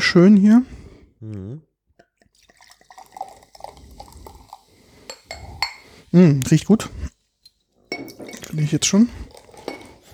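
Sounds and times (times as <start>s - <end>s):
speech: 0.1s - 1.7s, 6.1s - 7.0s, 8.5s - 9.2s
lemonade being poured into a glass: 2.0s - 10.1s.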